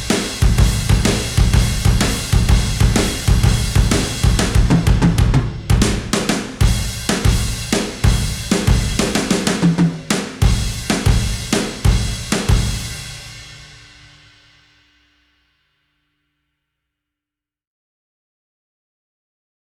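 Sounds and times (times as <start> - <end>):
drums: 0.0 - 15.4.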